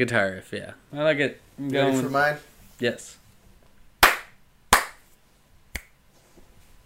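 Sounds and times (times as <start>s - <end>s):
speech: 0.0s - 3.2s
hand slaps: 4.0s - 5.1s, 5.7s - 6.0s
finger snap: 5.7s - 6.0s.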